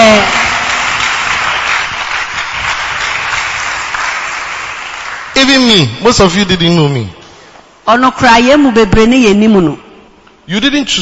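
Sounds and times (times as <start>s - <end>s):
audience clapping: 0.0s - 5.9s
speech: 5.8s - 7.2s, 7.9s - 9.8s, 10.5s - 11.0s.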